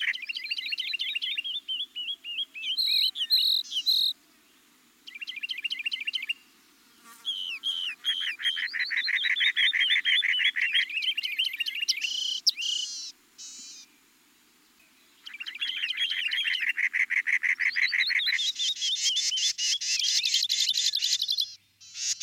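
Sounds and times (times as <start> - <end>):
birds singing loud rapid trills and repeated chirping notes: 0.0 - 22.2.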